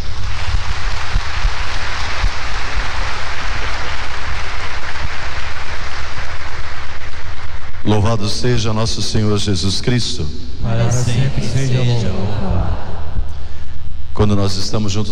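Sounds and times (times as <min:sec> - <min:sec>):
audience applause: 0:00.0 - 0:07.8
speech: 0:07.9 - 0:12.9, 0:14.2 - 0:15.0.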